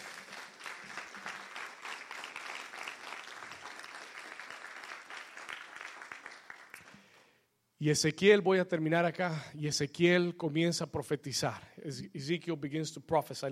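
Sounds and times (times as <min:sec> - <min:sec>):
audience applause: 0:00.0 - 0:06.9
speech: 0:07.8 - 0:13.4.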